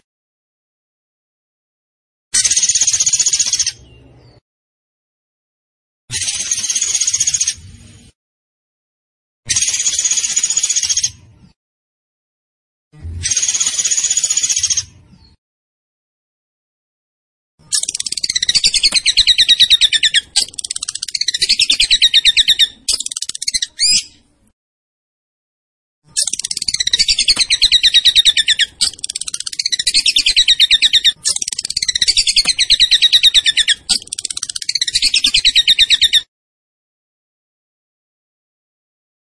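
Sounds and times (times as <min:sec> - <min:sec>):
tembakan bird twittering song: 0:02.4 - 0:04.4, 0:09.6 - 0:11.6, 0:13.3 - 0:15.4, 0:17.6 - 0:24.4, 0:26.1 - 0:36.3.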